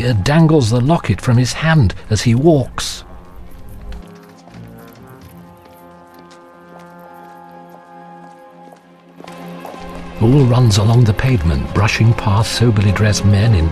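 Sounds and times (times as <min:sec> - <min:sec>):
speech: 0:00.0 - 0:03.1, 0:10.2 - 0:13.7
horse-drawn carriage hooves clip-clopping: 0:01.2 - 0:13.5
sustained musical score: 0:03.0 - 0:13.7.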